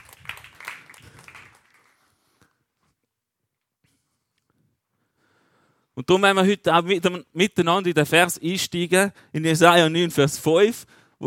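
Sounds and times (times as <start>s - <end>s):
audience applause: 0.0s - 2.2s
speech: 6.0s - 11.2s.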